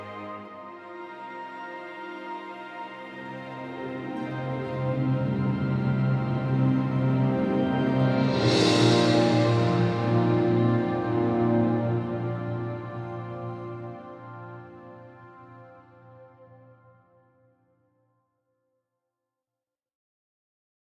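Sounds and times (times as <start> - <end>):
cinematic music: 0.0 - 16.5.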